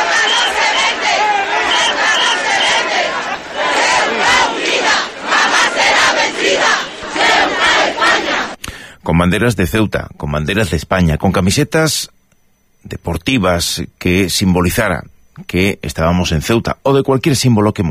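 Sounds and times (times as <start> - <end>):
thousands of people shouting in the streets of Ceuta: 0.0 - 8.6
speech: 9.2 - 12.2, 12.8 - 17.8.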